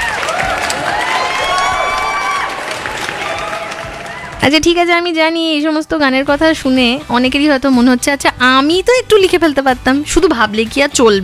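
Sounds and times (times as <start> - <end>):
crowd clapping and cheering: 0.0 - 4.9
speech: 4.4 - 11.2.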